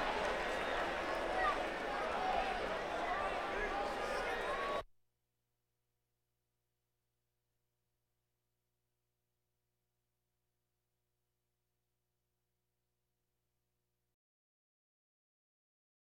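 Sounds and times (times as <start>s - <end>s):
crowds: 0.0s - 4.8s.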